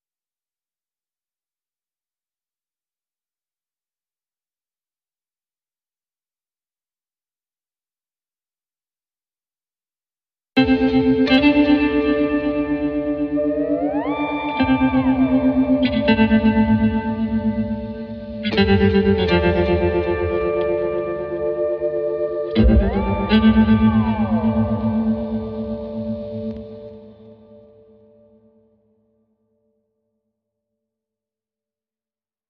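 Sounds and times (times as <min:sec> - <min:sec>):
guitars: 0:10.6 - 0:27.8.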